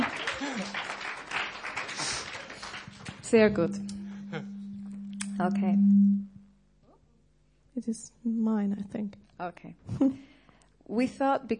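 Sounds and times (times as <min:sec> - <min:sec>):
audience applause: 0:00.0 - 0:03.6
speech: 0:03.3 - 0:03.9, 0:05.4 - 0:06.3, 0:07.8 - 0:10.3, 0:10.9 - 0:11.5.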